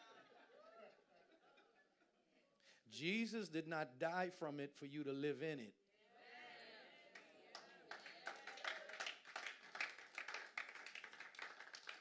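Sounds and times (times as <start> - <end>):
speech: 2.9 - 5.8
few people clapping: 7.1 - 11.9.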